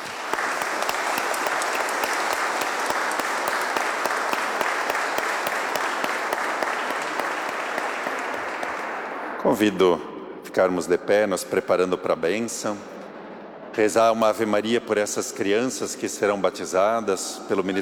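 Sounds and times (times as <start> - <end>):
audience clapping: 0.0 - 9.5
speech: 9.5 - 13.0, 13.8 - 17.8.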